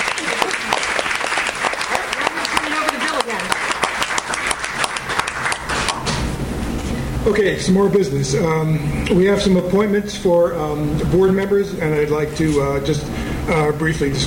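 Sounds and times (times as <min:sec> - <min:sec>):
audience applause: 0:00.0 - 0:06.2
speech: 0:07.3 - 0:14.2.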